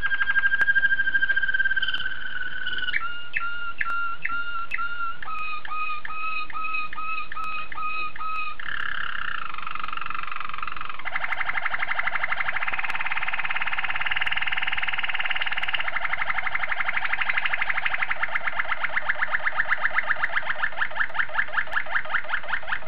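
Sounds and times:
Oriental magpie-robin song: 0:00.0 - 0:22.8.

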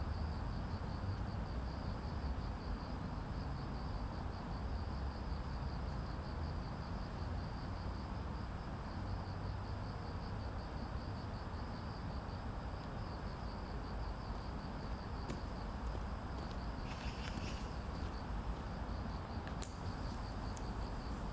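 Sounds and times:
cricket trilling: 0:00.1 - 0:21.3
low rumble of street traffic: 0:13.7 - 0:21.3.

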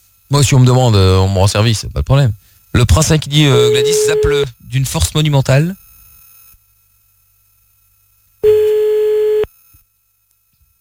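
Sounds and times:
speech: 0:00.3 - 0:05.8
telephone tone after a call gets cut off: 0:03.5 - 0:04.4, 0:08.4 - 0:09.5.

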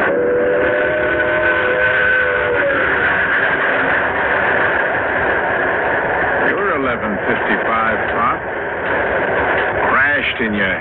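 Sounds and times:
train whistle or horn: 0:00.0 - 0:03.5
scheduled train passing: 0:00.0 - 0:10.7.

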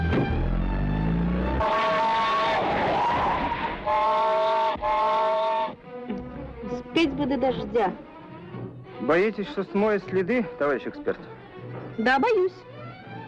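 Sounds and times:
militia duty car engine starting and revving: 0:00.0 - 0:04.1
brief tire squeal as the car pulls away: 0:01.5 - 0:05.8
speech: 0:07.0 - 0:08.1, 0:09.1 - 0:11.4, 0:12.0 - 0:12.7.

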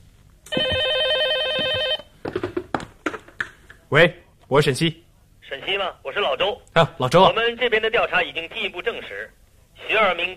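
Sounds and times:
telephone ringing: 0:00.5 - 0:02.1
clattering knocks and handling sounds: 0:01.6 - 0:03.6
speech: 0:03.9 - 0:10.3.

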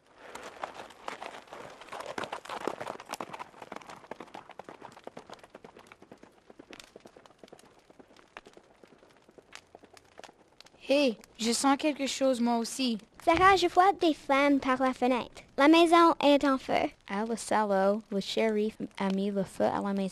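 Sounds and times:
horse galloping away: 0:00.0 - 0:10.8
speech: 0:10.9 - 0:20.1.

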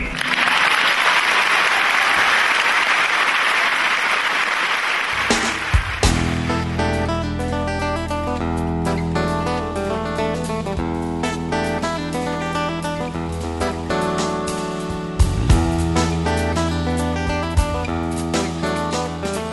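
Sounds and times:
studio applause for an interviewee on a talk show: 0:00.0 - 0:06.6
music with sustained tones: 0:05.2 - 0:19.5.

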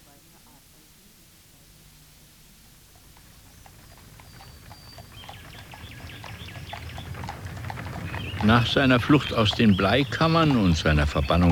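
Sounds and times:
two strong chestnut horses pulling a light well-sprung travelling carriage: 0:02.1 - 0:11.5
travelling carriage wheels rumbling: 0:02.6 - 0:11.5
speech: 0:08.5 - 0:11.5.

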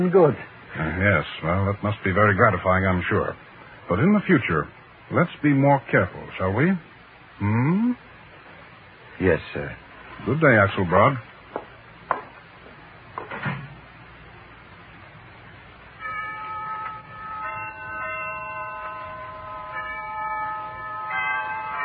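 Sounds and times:
speech: 0:00.0 - 0:08.1, 0:09.2 - 0:11.7
tower bells chiming: 0:16.0 - 0:21.8.

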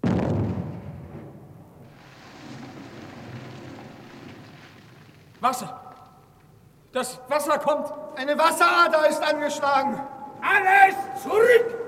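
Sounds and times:
black powder blast in a mine: 0:00.0 - 0:05.2
speech: 0:05.4 - 0:05.9, 0:06.9 - 0:11.8.

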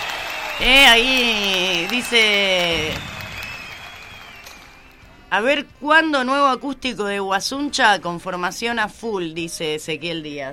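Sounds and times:
faint applause: 0:00.0 - 0:05.3
speech: 0:00.6 - 0:03.1, 0:05.3 - 0:10.5.

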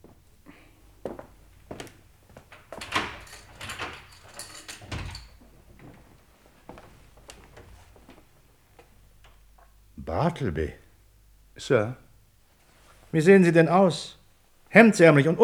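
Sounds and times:
lock clicking and rattling: 0:01.3 - 0:05.8
door being pulled open: 0:01.3 - 0:06.2
speech: 0:10.3 - 0:10.8, 0:11.6 - 0:12.0, 0:13.1 - 0:15.4.

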